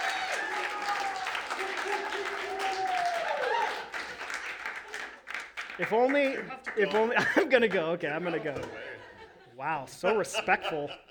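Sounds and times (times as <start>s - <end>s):
audience clapping: 0.0s - 8.0s
speech: 5.8s - 8.8s, 9.6s - 11.1s
laughter: 6.8s - 11.1s.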